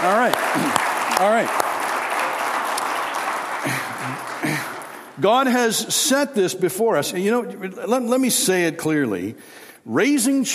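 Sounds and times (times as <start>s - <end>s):
speech: 0.0s - 1.6s, 5.2s - 10.5s
audience clapping and cheering: 0.0s - 5.7s.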